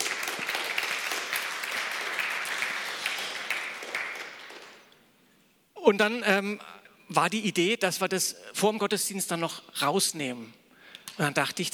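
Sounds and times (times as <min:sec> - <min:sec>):
audience applause: 0:00.0 - 0:04.9
speech: 0:05.8 - 0:10.6, 0:11.2 - 0:11.7.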